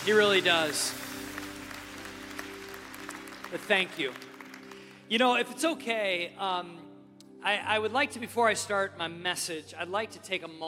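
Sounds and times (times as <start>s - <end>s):
speech: 0.0s - 1.1s, 3.5s - 4.3s, 5.1s - 6.8s, 7.4s - 10.6s
audience applause: 0.0s - 5.1s.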